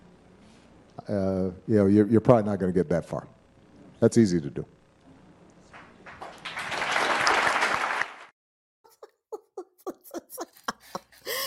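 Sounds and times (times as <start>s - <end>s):
speech: 1.1s - 3.4s, 4.0s - 4.8s
delayed audience applause: 5.8s - 8.3s
laughter: 8.9s - 11.4s.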